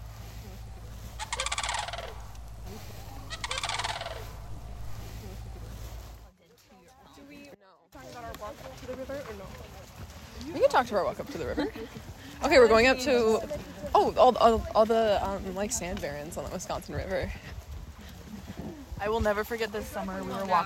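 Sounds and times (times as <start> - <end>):
steady low rumble: 0.0 - 6.3
sandhill crane calls: 0.5 - 6.2
speech: 10.8 - 17.5, 19.0 - 20.6.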